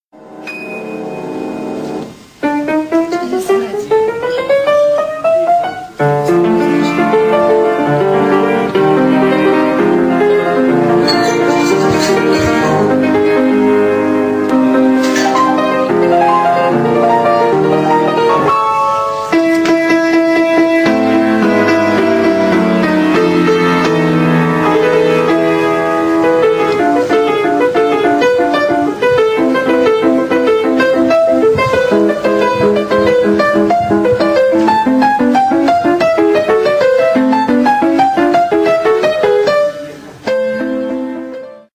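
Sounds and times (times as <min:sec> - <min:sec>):
piano: 0:00.1 - 0:41.7.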